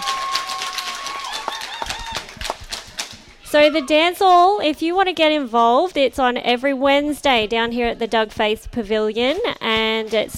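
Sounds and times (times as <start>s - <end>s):
crowd of dancers cheering: 0.0s - 4.0s
speech: 3.5s - 10.3s.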